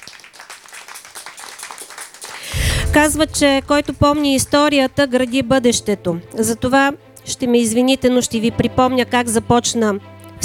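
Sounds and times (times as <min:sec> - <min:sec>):
audience applause at a jazz festival for the organizers: 0:00.0 - 0:02.5
speech: 0:02.9 - 0:10.4.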